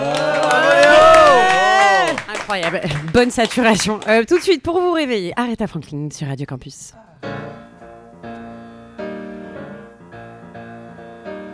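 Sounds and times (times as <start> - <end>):
audience cheering: 0.0 - 4.0
audience applauding: 0.0 - 4.5
speech: 2.5 - 7.5.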